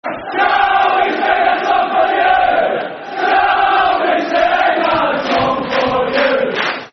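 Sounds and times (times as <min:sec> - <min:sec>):
football crowd chanting: 0:00.0 - 0:06.9.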